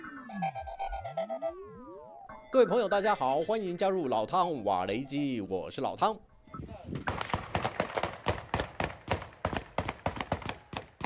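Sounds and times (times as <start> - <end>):
speech: 2.5 - 6.2
burst of gunfire: 7.0 - 11.0.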